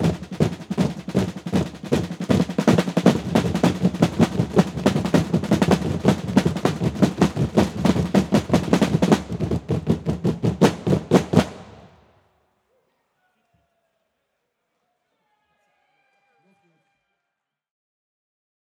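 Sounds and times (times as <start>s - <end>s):
marching drummers: 0.0s - 12.0s.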